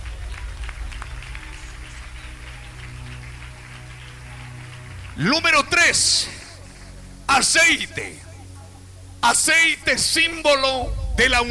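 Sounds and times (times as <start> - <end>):
congregation clapping during a church sermon: 0.0 - 8.8
low hum: 0.0 - 11.4
speech: 5.2 - 6.4, 7.4 - 8.3, 9.2 - 11.4.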